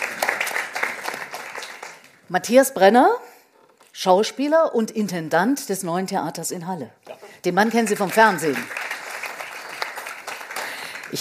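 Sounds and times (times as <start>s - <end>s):
audience applause: 0.0s - 2.1s, 7.9s - 11.2s
speech: 2.3s - 3.3s, 4.0s - 8.8s.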